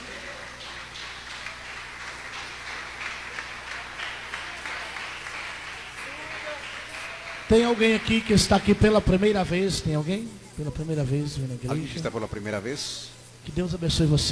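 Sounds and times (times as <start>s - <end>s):
audience clapping hands: 0.0s - 10.9s
speech: 7.5s - 14.3s.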